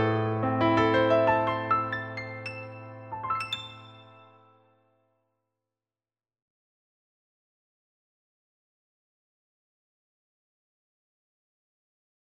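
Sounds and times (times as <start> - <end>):
solo piano: 0.0 - 4.8.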